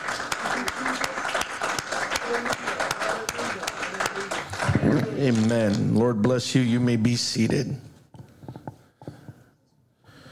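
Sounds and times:
audience clapping hands in praise: 0.0 - 6.1
speech: 5.2 - 7.9.

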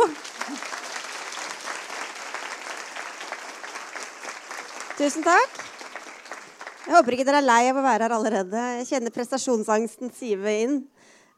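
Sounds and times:
audience applause: 0.0 - 7.4
speech: 5.0 - 5.7, 6.9 - 11.3.

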